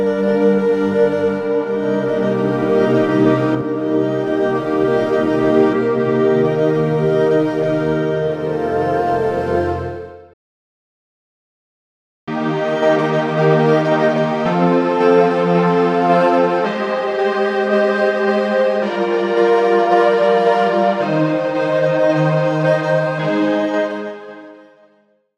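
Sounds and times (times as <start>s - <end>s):
bowed strings: 0.0s - 10.3s, 12.3s - 24.6s.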